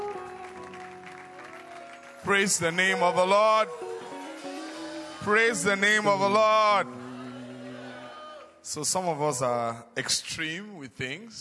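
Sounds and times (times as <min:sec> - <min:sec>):
audience clapping hands: 0:00.0 - 0:05.2
speech: 0:02.2 - 0:04.1, 0:05.2 - 0:07.1, 0:08.6 - 0:11.4.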